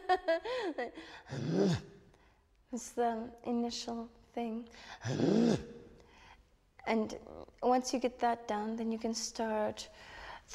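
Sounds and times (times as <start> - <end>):
speech: 0.1 - 2.0, 2.7 - 5.8, 6.8 - 10.5
voice imitating dog growling for throat singing: 1.3 - 1.8, 5.0 - 5.7.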